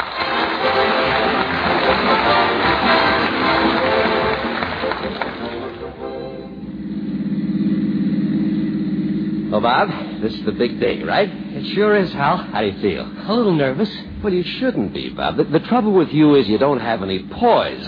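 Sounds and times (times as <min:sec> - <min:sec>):
car engine running: 0:00.0 - 0:17.8
speech: 0:09.6 - 0:17.8.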